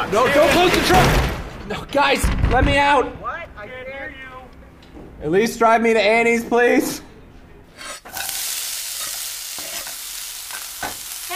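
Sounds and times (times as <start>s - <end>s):
speech: 0.1s - 3.8s, 5.2s - 7.1s
bacon and mussels sizzling in a pan: 8.0s - 11.3s.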